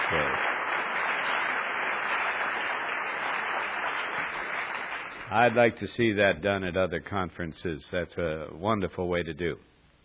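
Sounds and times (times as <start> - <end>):
audience applause: 0.0 - 5.8
speech: 5.3 - 9.7.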